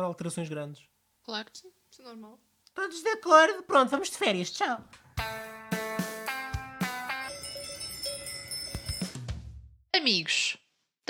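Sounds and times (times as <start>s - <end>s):
speech: 0.0s - 5.7s, 10.0s - 11.0s
cowbell ringing jingle: 6.8s - 9.2s.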